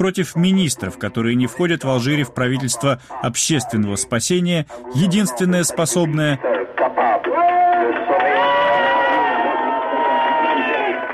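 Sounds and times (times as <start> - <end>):
speech: 0.0 - 6.6
chant-like voices at a demonstration: 0.0 - 11.1
large crowd at a demonstration roaring and shouting: 6.4 - 11.1.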